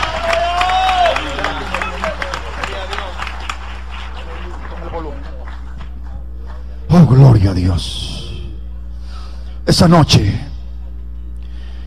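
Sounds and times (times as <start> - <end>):
voices and cheering: 0.0 - 5.5
audience applauding: 0.0 - 6.8
speech: 7.1 - 8.1, 9.8 - 10.5.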